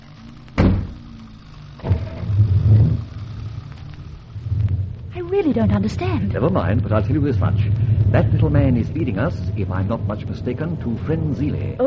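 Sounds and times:
car engine driving off: 0.0 - 11.8
car door slamming: 0.6 - 1.0
speech: 5.3 - 11.8.

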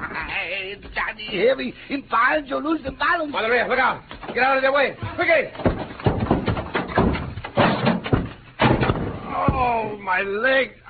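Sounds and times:
speech: 0.7 - 5.8, 9.6 - 10.8
stacked packing cases toppling over: 4.0 - 9.8.

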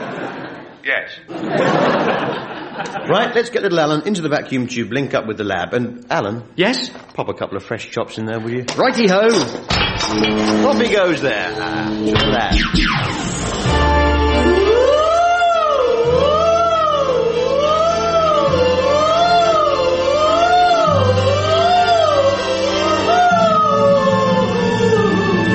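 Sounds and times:
laughter: 0.0 - 3.4
speech: 0.8 - 14.0
fire engine siren on a record: 14.3 - 16.8, 17.5 - 25.5.

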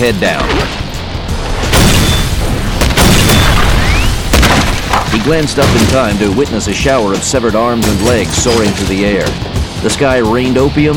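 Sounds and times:
speech: 0.0 - 0.8, 5.2 - 10.9
40mm grenade explosion: 1.6 - 6.3
sharp cracks: 1.7 - 6.2.

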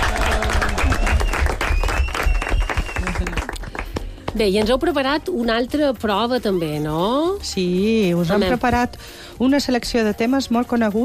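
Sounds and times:
audience applause: 0.0 - 4.1
speech: 4.4 - 11.0.

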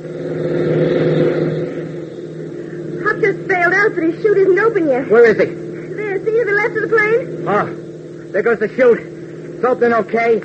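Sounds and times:
jeep engine revving and driving off: 0.0 - 10.4
speech: 4.2 - 5.6, 6.9 - 10.4.

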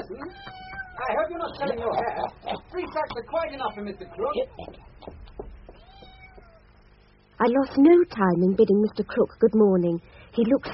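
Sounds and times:
Mr. Krook's cat meowing: 0.0 - 1.3, 3.4 - 4.4, 5.7 - 6.7
speech: 1.1 - 5.2, 7.4 - 10.7.

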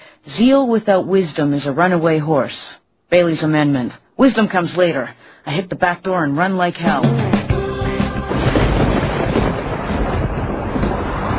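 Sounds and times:
speech: 0.2 - 7.3
rolling thunder: 7.4 - 11.3
heavy rain pouring: 7.5 - 11.3.

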